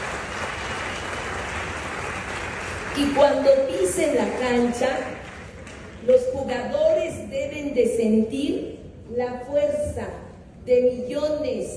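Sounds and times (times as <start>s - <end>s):
large crowd applauding: 0.0s - 6.0s
speech: 3.0s - 5.2s, 6.0s - 11.7s.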